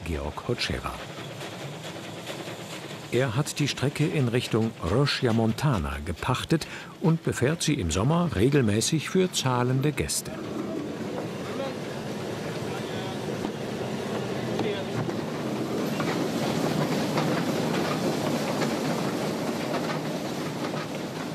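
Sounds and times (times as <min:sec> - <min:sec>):
1917 Austrian steam locomotive pulling carriages with observation platform: 0:00.0 - 0:21.3
speech: 0:00.1 - 0:01.1, 0:03.1 - 0:10.7.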